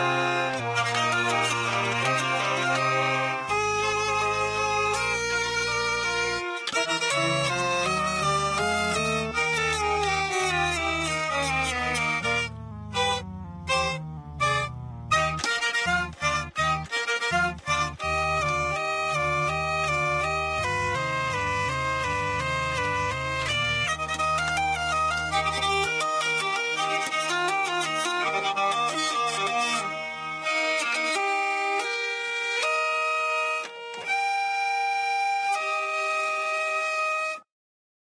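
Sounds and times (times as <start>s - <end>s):
hurdy-gurdy variant: 0.0s - 37.5s.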